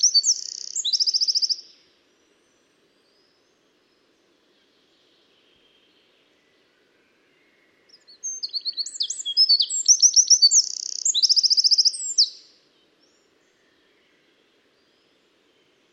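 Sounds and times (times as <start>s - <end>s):
Eurasian wren singing, Troglodytes troglodytes: 0.0s - 1.7s, 7.9s - 12.5s.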